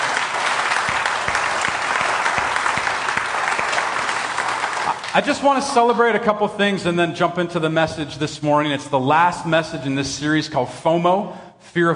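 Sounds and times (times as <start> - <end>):
audience applause: 0.0 - 5.5
speech: 5.2 - 11.9.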